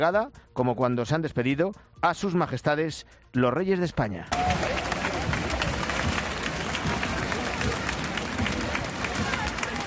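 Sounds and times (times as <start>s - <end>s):
speech: 0.0s - 4.9s
crowd applauding and cheering at a parade: 4.3s - 9.8s.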